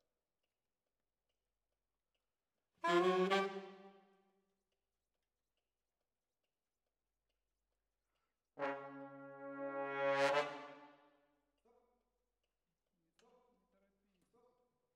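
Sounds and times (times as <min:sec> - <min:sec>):
brass instruments: 0:02.8 - 0:03.9, 0:08.6 - 0:11.0.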